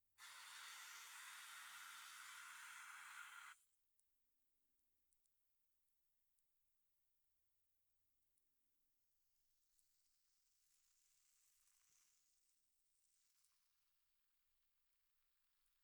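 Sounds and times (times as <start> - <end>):
carbonated fizzing ear massage: 0.2 - 3.6.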